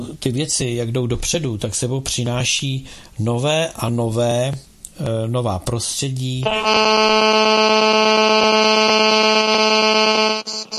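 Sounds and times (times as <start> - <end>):
speech: 0.1 - 9.3
phone ringing: 6.5 - 10.7.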